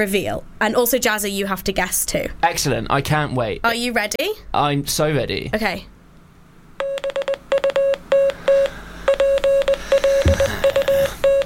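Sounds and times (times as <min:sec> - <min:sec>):
speech: 0:00.0 - 0:05.9
Morse code beeps: 0:06.8 - 0:11.4.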